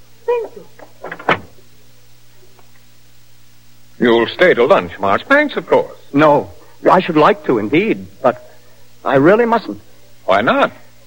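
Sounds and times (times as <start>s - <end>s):
door opening click: 0.8s - 1.6s
speech: 4.0s - 10.8s.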